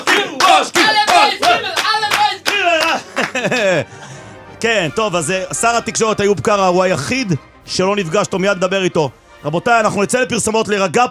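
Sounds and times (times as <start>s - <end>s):
hand clapping: 0.0s - 3.8s
laughter: 2.5s - 4.2s
speech: 4.6s - 11.1s.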